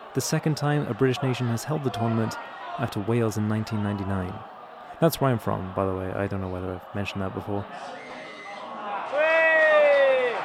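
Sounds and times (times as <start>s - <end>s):
speech: 0.2s - 8.2s
man shouting in cheer at a Rugby World Cup watch party during an England match: 9.1s - 10.4s.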